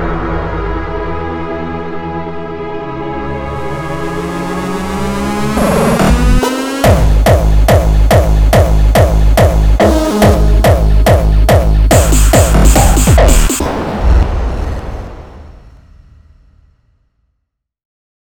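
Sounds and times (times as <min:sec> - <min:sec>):
hardcore music samples: 0:00.0 - 0:16.5
hardstyle music loop: 0:03.5 - 0:14.2.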